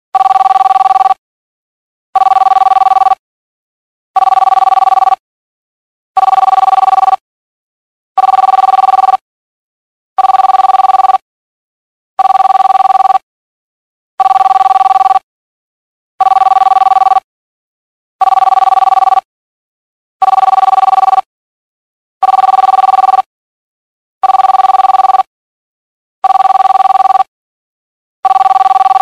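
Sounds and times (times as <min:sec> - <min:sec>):
normal ringtone: 0:00.2 - 0:01.2, 0:02.2 - 0:03.2, 0:04.2 - 0:05.2, 0:06.2 - 0:07.2, 0:08.2 - 0:09.2, 0:10.2 - 0:11.2, 0:12.2 - 0:13.3, 0:14.2 - 0:15.3, 0:16.2 - 0:17.3, 0:18.2 - 0:19.3, 0:20.2 - 0:21.3, 0:22.2 - 0:23.3, 0:24.2 - 0:25.3, 0:26.2 - 0:27.3, 0:28.2 - 0:29.0.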